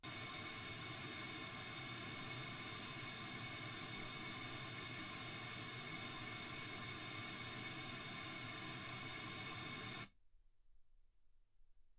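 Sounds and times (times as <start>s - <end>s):
white gaussian noise at 48kHz: 0.1s - 10.1s.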